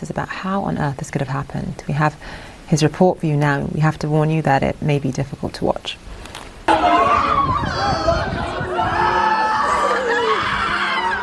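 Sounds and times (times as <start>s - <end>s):
speech: 0.0s - 6.2s
people shrieking and crying: 6.7s - 11.2s.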